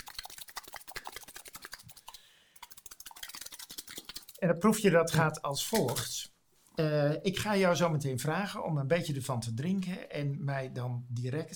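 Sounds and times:
soft drink can shaken to loosen the sugar: 0.0 - 4.4
speech: 4.4 - 11.5.

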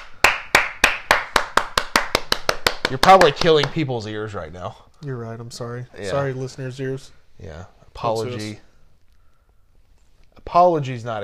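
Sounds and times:
slow clap by a single pair of hands: 0.0 - 3.8
speech: 2.9 - 8.7, 10.4 - 11.2.

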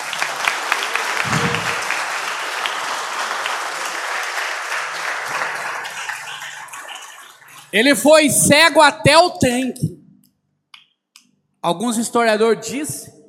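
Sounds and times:
audience applause: 0.0 - 7.1
speech: 7.7 - 10.0, 11.6 - 13.2.

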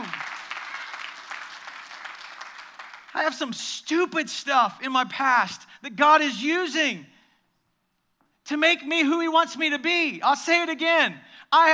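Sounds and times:
audience clapping: 0.0 - 3.4
speech: 3.2 - 7.1, 8.5 - 11.7.

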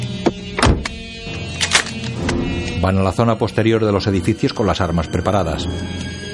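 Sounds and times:
car door slamming: 0.2 - 1.2
speech: 2.8 - 6.2.

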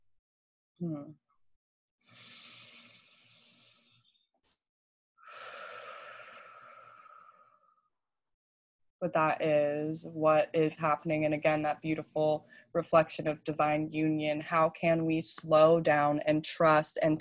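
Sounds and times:
speech: 0.8 - 1.3, 9.0 - 17.1
person taking a deep breath: 2.0 - 4.2, 5.2 - 7.9, 12.4 - 12.7.

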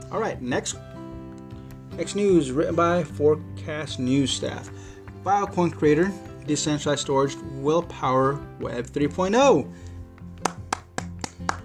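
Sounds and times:
speech: 0.1 - 0.9, 2.0 - 9.9
hand claps: 3.9 - 8.0, 9.8 - 11.6.

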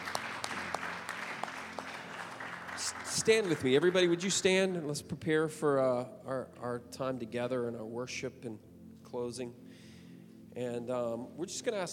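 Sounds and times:
crowd applause: 0.0 - 4.6
speech: 3.2 - 9.7, 10.6 - 11.9.

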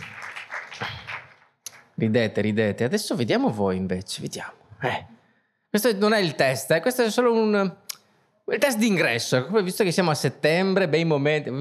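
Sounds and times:
audience applauding: 0.0 - 2.2
speech: 2.0 - 7.8, 8.5 - 11.5.

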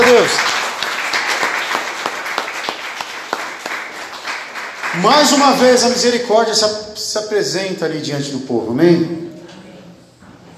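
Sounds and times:
audience applauding: 0.0 - 6.0
speech: 5.0 - 9.3.

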